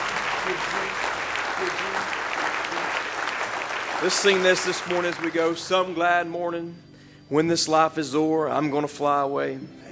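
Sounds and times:
audience hand clap of praise: 0:00.0 - 0:05.9
speech: 0:04.0 - 0:09.8.

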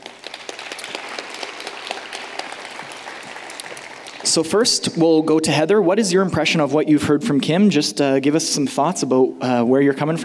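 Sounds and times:
audience applause: 0:00.0 - 0:04.5
speech: 0:04.4 - 0:10.2.

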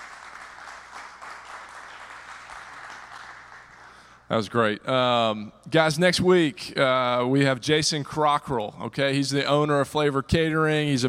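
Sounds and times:
crowd applause: 0:00.0 - 0:04.2
speech: 0:04.3 - 0:11.0.

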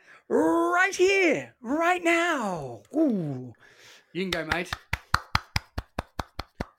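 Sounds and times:
speech: 0:00.3 - 0:04.8
small hand clapping: 0:04.3 - 0:06.7.

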